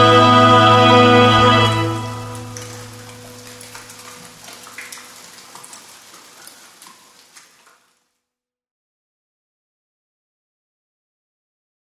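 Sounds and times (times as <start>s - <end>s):
rain: 0.0s - 8.1s.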